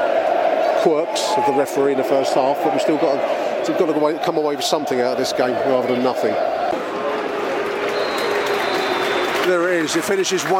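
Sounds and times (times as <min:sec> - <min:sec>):
stadium crowd applauding the players: 0:00.0 - 0:10.5
speech: 0:00.8 - 0:06.6, 0:09.5 - 0:10.5.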